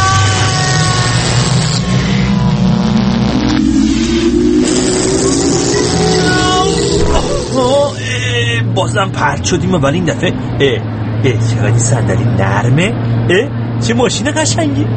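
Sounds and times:
time machine sound effect rumble: 0:00.3 - 0:08.1
rising whining tone: 0:01.3 - 0:08.0
speech: 0:08.9 - 0:14.9.

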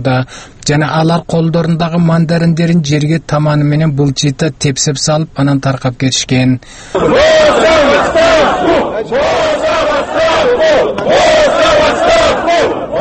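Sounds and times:
speech: 0:00.0 - 0:12.8
protesters in Kaliningrad chanting for Putin and Boos to resign: 0:07.0 - 0:12.9.

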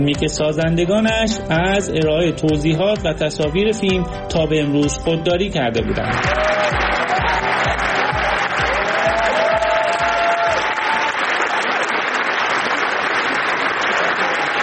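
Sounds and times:
speech: 0:00.0 - 0:07.0
audience applause at film premiere: 0:05.8 - 0:14.6.

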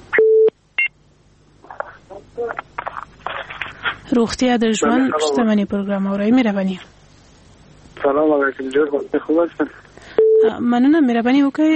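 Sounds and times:
speech: 0:04.2 - 0:07.0, 0:08.0 - 0:09.8, 0:10.4 - 0:11.7
telephone line tone after a dropped call: 0:10.2 - 0:10.5.

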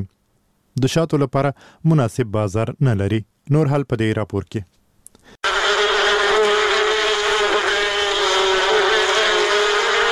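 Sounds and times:
speech: 0:00.8 - 0:05.5
honeybees buzzing at a bee farm in Kunduz: 0:05.4 - 0:10.1.

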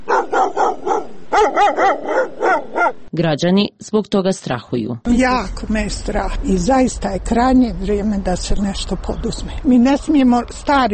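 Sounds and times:
stray dogs barking on the streets of Sarajevo: 0:00.0 - 0:03.1
speech: 0:03.2 - 0:10.9.

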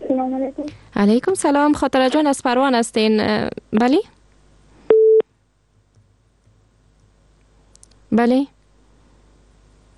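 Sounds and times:
faint noise: 0:00.0 - 0:09.9
speech: 0:00.1 - 0:04.2, 0:08.1 - 0:08.6
telephone busy tone after a caller's line dropped: 0:04.9 - 0:05.2.

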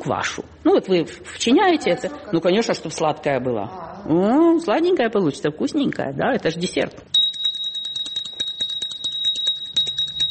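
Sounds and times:
speech: 0:00.0 - 0:07.2
ceramic hand bell ringing to call waiter: 0:07.2 - 0:10.2.

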